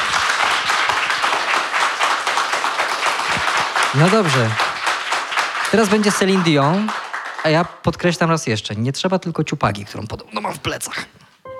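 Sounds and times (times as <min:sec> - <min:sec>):
audience applause: 0:00.0 - 0:08.1
speech: 0:03.9 - 0:04.6, 0:05.7 - 0:11.2.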